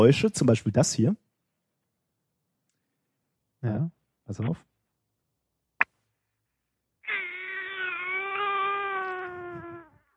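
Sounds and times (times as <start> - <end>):
speech: 0.0 - 1.2, 3.6 - 4.7
recording of a small child crying: 7.0 - 10.1.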